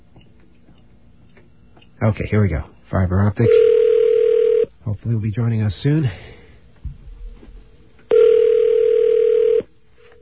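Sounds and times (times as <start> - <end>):
speech: 2.0 - 3.7, 4.9 - 6.3
telephone ringback tone on an outgoing call: 3.4 - 4.7, 8.1 - 9.7.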